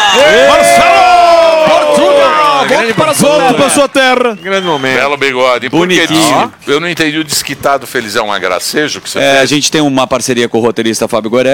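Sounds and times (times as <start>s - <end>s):
whoops and shouting voices: 0.0s - 5.3s
TV comedy show studio audience cheering: 0.0s - 6.6s
speech: 2.8s - 11.5s.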